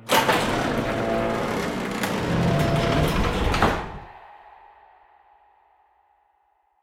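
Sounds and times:
garage door opening: 0.0 - 4.2.

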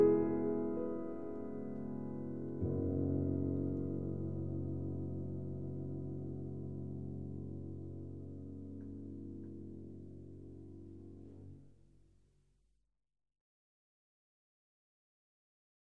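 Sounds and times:
solo piano: 0.0 - 11.9.

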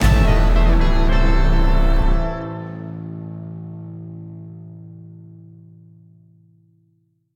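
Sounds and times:
fail sting slam: 0.0 - 3.2.

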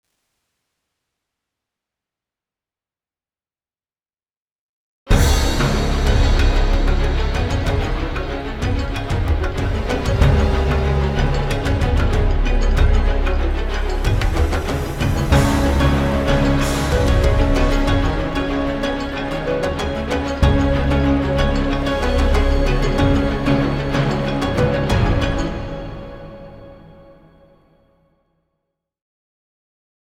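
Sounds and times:
combat music loop: 5.1 - 26.3.

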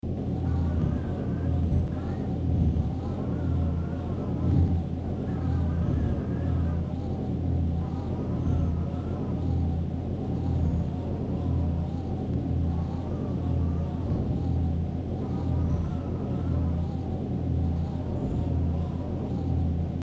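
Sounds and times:
ambience: 0.0 - 20.0.

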